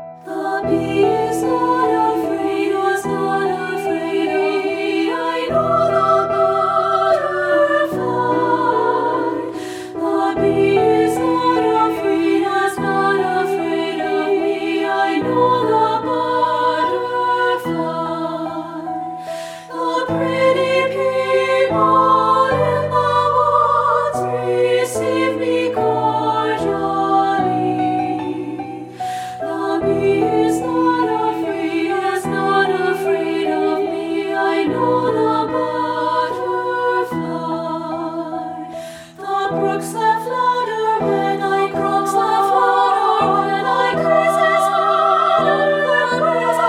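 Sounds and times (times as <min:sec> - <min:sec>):
treble choir singing: 0:00.2 - 0:46.6.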